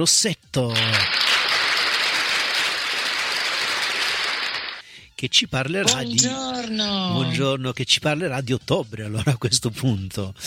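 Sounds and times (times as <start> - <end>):
speech: 0.0 - 1.2, 5.2 - 10.4
applause for a guest on an Italian radio show: 0.6 - 4.8.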